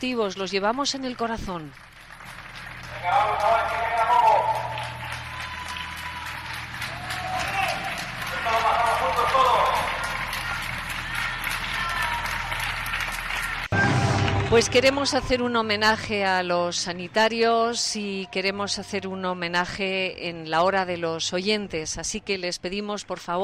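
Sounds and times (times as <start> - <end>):
speech: 0.0 - 2.0, 3.0 - 4.0, 14.5 - 23.4
applause for health workers: 0.2 - 15.0.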